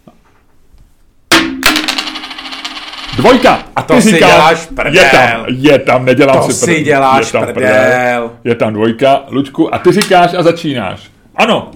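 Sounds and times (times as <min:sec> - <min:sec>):
dice thrown onto a hard surface: 0:01.7 - 0:03.6
speech: 0:03.2 - 0:11.7.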